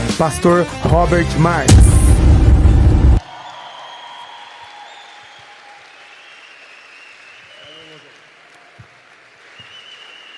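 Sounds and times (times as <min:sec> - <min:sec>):
speech: 0:00.2 - 0:02.3
audience applause: 0:03.2 - 0:10.3.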